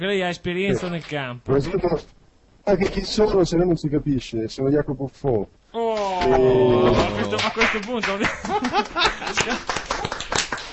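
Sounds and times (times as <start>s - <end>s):
speech: 0.0s - 9.8s
laughter: 6.1s - 10.3s
audience clapping: 7.0s - 10.7s.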